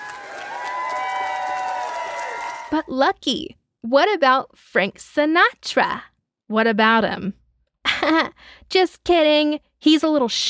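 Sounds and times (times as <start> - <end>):
audience applause at a comedy show: 0.0 - 2.8
speech: 2.7 - 7.4, 8.0 - 10.4.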